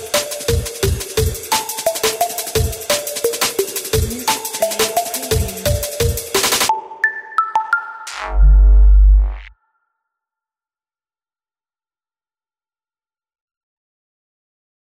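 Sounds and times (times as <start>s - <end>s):
dynamic breakbeat: 0.0s - 6.7s, 8.1s - 9.5s.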